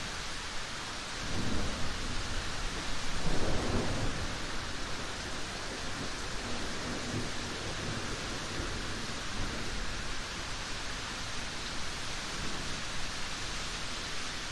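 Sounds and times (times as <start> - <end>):
rain: 0.0 - 14.5
thunderstorm rumbles: 1.2 - 9.8.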